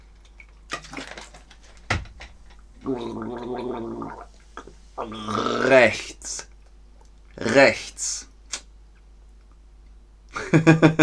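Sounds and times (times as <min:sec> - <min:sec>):
speech: 0:02.8 - 0:04.3, 0:05.0 - 0:06.5, 0:07.4 - 0:08.3, 0:10.5 - 0:11.0
person gargling a sip of water: 0:02.8 - 0:06.1
mouth sounds: 0:02.8 - 0:08.7
laughter: 0:10.4 - 0:11.0.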